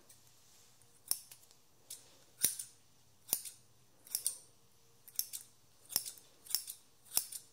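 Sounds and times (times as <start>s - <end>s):
scissors snipping real hair: 1.0s - 4.4s, 5.1s - 7.5s.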